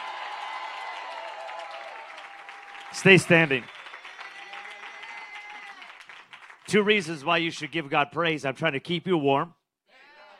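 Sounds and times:
cheers: 0.0 - 6.7, 9.9 - 10.3
crowd applauding: 0.0 - 7.4
speech: 2.9 - 3.8, 6.7 - 9.6.

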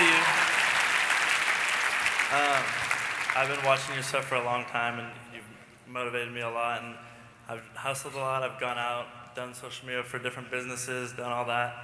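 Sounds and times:
audience applause: 0.0 - 4.1
speech: 3.4 - 5.3, 5.9 - 11.8.

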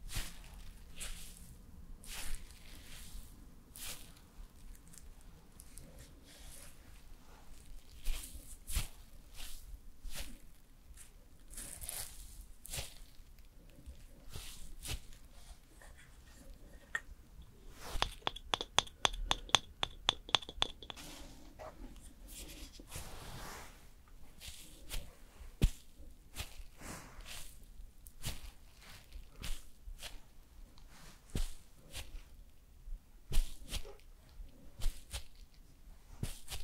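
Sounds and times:
soft makeup and hair brushing and handling: 0.0 - 36.6
sharp clicks and taps: 16.8 - 21.0.

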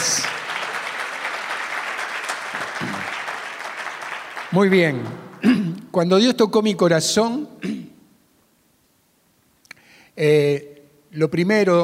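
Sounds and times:
audience applause: 0.0 - 5.5
speech: 4.5 - 7.8, 10.2 - 11.8.

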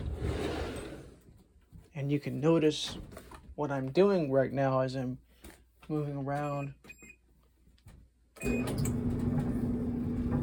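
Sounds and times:
speech: 2.0 - 5.2, 5.9 - 7.0, 8.4 - 9.1
washing machine starting up: 8.4 - 10.4.

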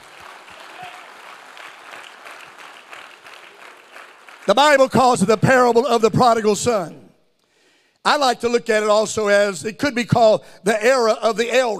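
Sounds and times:
audience clapping hands: 0.0 - 5.1
speech: 4.5 - 7.0, 8.0 - 11.7.

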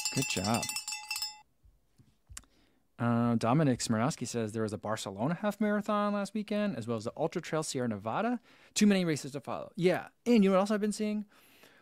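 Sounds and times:
bell ding rung in celebration: 0.0 - 1.4
speech: 0.1 - 0.8, 3.0 - 11.5.

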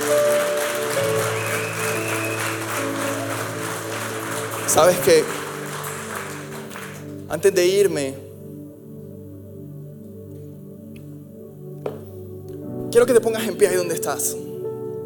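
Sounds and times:
audience applause: 0.0 - 7.7
speech: 4.7 - 5.4, 7.3 - 8.2, 13.0 - 14.5.

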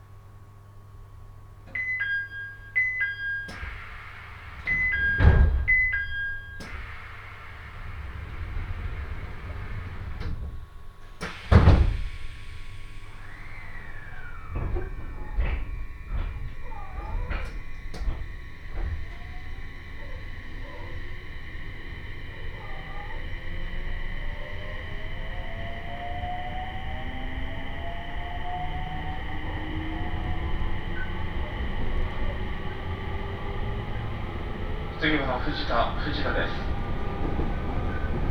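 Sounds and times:
Tohoku Main Line train motor whine rising in pitch: 1.3 - 38.2
short beeping chimes on a train: 1.8 - 4.0.

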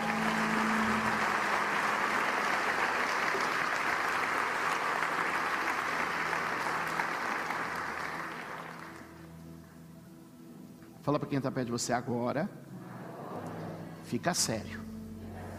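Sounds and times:
audience applause: 0.0 - 9.3
speech: 11.1 - 12.8, 14.1 - 14.9.

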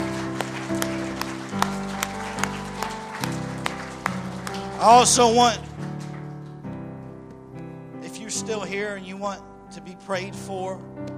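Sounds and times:
audience clapping hands in praise: 0.0 - 7.2
speech: 4.8 - 5.7, 8.5 - 11.1.

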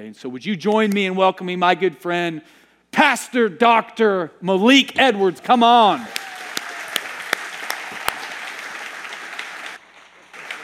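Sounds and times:
speech: 0.0 - 6.2
audience clapping: 5.4 - 10.6.

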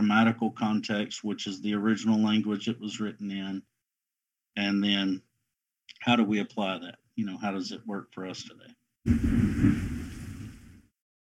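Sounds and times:
speech: 0.1 - 3.7, 4.6 - 5.3, 5.9 - 10.0
rain hissing: 9.1 - 10.8
thunder rumbling: 9.1 - 10.8.

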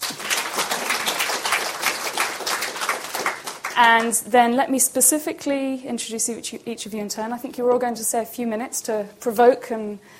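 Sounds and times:
audience applauding: 0.0 - 4.2
speech: 3.8 - 10.1.

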